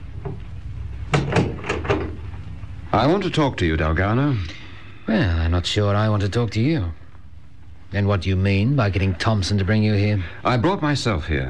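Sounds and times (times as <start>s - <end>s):
low steady hum: 0.0s - 11.4s
door being closed with knocking thuds: 1.1s - 2.2s
speech: 3.0s - 7.0s, 7.9s - 11.4s.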